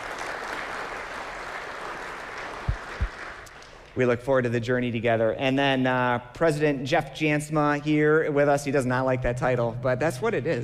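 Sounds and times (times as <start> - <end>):
audience applause: 0.0 - 3.9
speech: 4.0 - 10.6.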